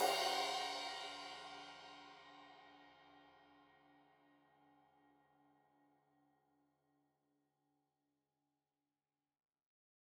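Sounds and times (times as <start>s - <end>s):
15 inch crash cymbal edge hit: 0.0s - 1.8s.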